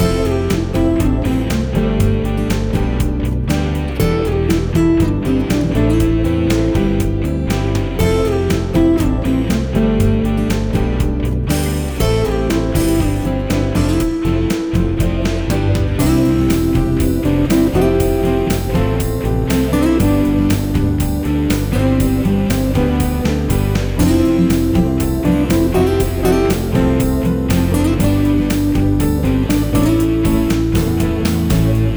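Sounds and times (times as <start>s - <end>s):
peaceful adventure background music: 0.0s - 31.9s.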